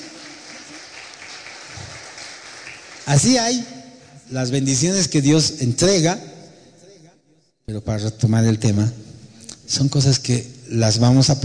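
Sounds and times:
church congregation applause: 0.0s - 3.9s
speech: 3.1s - 6.3s, 7.7s - 9.0s, 9.7s - 11.4s.

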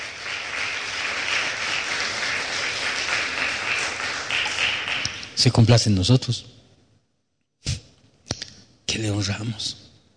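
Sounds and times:
audience applauding loudly: 0.0s - 5.4s
speech: 5.4s - 6.6s, 9.2s - 9.8s.

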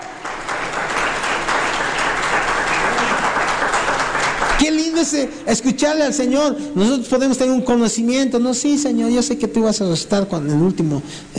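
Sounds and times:
audience applause: 0.0s - 5.3s
speech: 4.6s - 11.3s.

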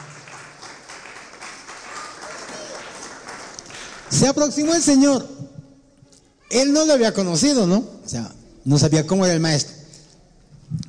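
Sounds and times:
audience applause: 0.0s - 4.6s
speech: 4.1s - 5.5s, 6.5s - 9.8s.

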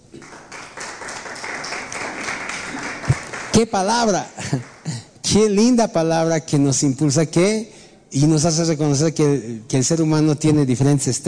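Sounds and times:
audience applause: 0.2s - 5.0s
speech: 3.6s - 4.7s, 5.3s - 11.2s.

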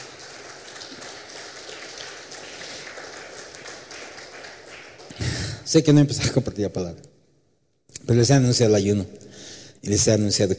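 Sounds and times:
audience applause: 0.0s - 5.8s
speech: 5.7s - 7.2s, 8.1s - 10.5s.

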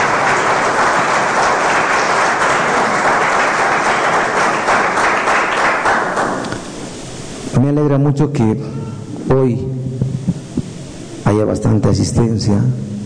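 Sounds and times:
loud audience applause: 0.0s - 6.5s
speech: 7.7s - 10.0s, 11.3s - 12.9s.

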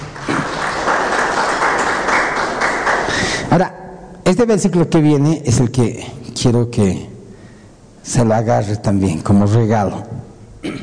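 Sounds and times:
audience applauding: 0.0s - 3.5s
speech: 3.5s - 7.1s, 8.0s - 10.8s.

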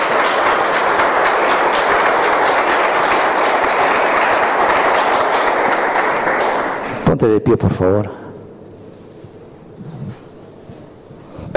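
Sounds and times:
audience applause: 0.0s - 7.1s
speech: 7.1s - 8.2s.

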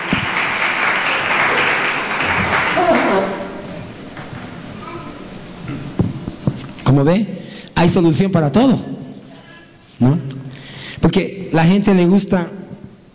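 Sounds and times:
audience applause: 0.0s - 3.6s
crowd murmur: 1.2s - 4.0s
speech: 6.9s - 9.0s, 10.0s - 10.3s, 11.2s - 12.6s.

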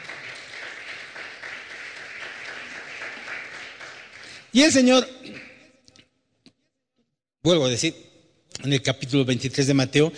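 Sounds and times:
audience applause: 0.0s - 5.6s
speech: 4.5s - 5.1s, 7.4s - 10.1s.

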